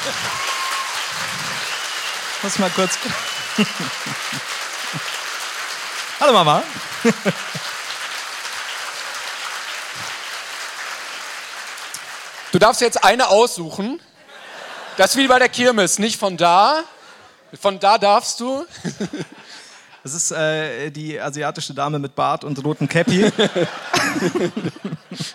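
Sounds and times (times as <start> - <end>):
laughter: 0.0 - 5.2, 6.7 - 7.9, 14.2 - 15.4, 18.7 - 19.7, 22.9 - 25.3
audience applause: 0.0 - 13.2
speech: 0.1 - 0.4, 2.4 - 5.2, 6.2 - 7.8, 12.6 - 14.1, 15.0 - 16.9, 17.5 - 25.3.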